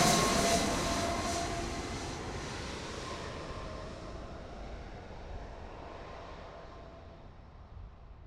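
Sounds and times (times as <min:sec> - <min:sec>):
blast wave sound effect: 0:00.0 - 0:02.4.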